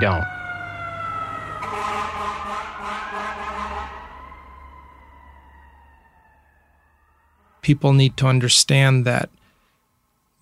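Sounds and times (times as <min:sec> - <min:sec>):
speech: 0:00.0 - 0:00.4, 0:07.6 - 0:09.4
fire truck siren: 0:00.0 - 0:07.8.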